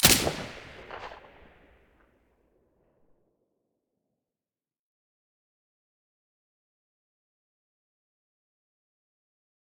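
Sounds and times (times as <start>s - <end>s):
silenced gunshot: 0.0s - 2.0s.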